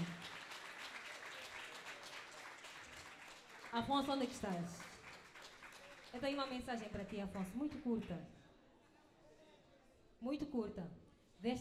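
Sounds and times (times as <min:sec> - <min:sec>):
audience applause: 0:00.0 - 0:06.6
speech: 0:03.7 - 0:04.9, 0:06.1 - 0:08.4, 0:10.2 - 0:11.5.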